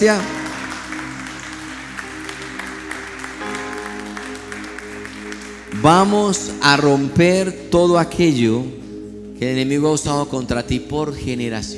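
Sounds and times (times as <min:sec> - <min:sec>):
speech: 0:00.0 - 0:00.4, 0:05.8 - 0:08.8, 0:09.4 - 0:11.7
large crowd clapping in a reverberant hall: 0:00.0 - 0:06.8
keyboard or organ chords: 0:00.0 - 0:11.7.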